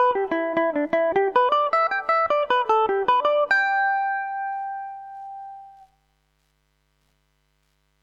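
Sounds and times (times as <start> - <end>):
mandolin haunted house tune in G major: 0.0 - 5.9.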